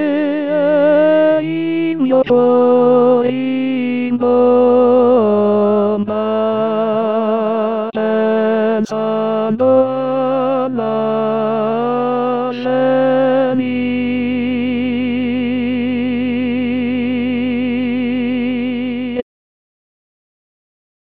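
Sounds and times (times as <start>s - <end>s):
tenor voice singing prominently: 0.0s - 19.2s.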